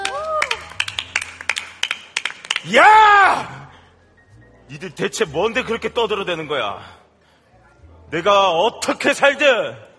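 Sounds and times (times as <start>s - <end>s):
clapping: 0.0s - 2.8s
speech: 2.6s - 3.5s, 4.7s - 7.0s, 8.1s - 9.8s.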